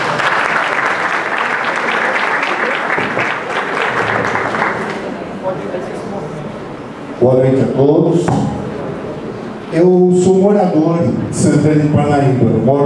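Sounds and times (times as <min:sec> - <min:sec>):
audience applause: 0:00.0 - 0:05.8
speech: 0:07.3 - 0:08.6, 0:09.7 - 0:12.8.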